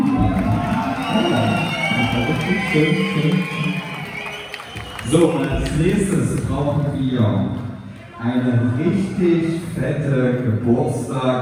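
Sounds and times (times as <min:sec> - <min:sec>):
crowd applause: 0:00.0 - 0:09.3
speech: 0:02.5 - 0:03.8, 0:05.1 - 0:11.4.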